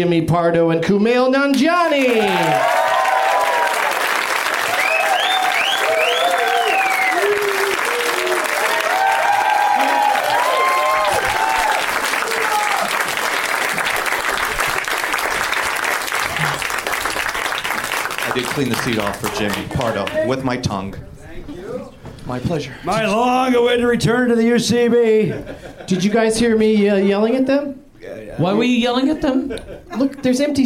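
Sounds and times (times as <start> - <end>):
speech: 0.0 - 2.9, 18.6 - 21.2, 22.3 - 27.8, 28.4 - 30.6
audience applause at a live comedy show at the UCB theatre: 1.9 - 20.4
audience whoops and cheers at a live comedy show: 2.0 - 13.1.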